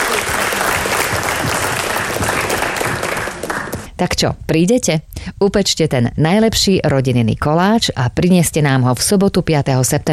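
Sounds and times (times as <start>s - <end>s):
big applause: 0.0s - 3.9s
speech: 4.0s - 10.1s.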